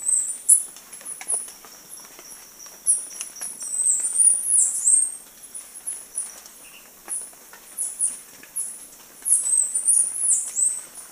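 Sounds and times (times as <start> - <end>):
chestnut-capped brush finch giving high squeaky notes: 0.0 - 11.0.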